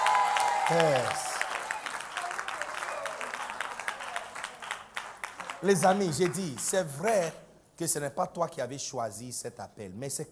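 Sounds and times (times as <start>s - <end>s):
audience applause at a church gathering: 0.0s - 6.8s
speech: 0.7s - 1.2s, 5.6s - 10.3s.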